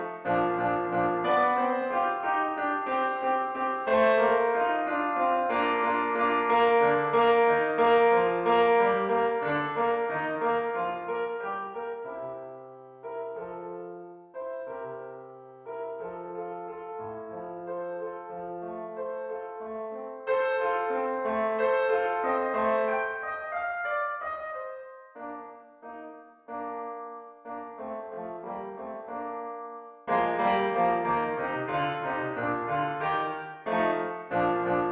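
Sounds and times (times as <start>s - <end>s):
clarinet playing a slow finale: 0.0s - 34.8s.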